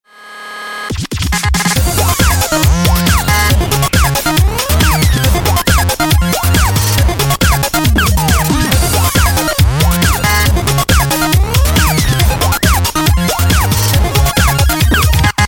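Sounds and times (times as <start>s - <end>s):
synthesizer: 0.8s - 15.4s.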